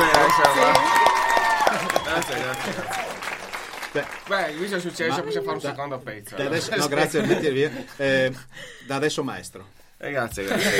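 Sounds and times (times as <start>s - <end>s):
audience applause: 0.0s - 5.5s
laughter: 1.6s - 8.6s, 10.4s - 10.7s
speech: 4.0s - 10.7s.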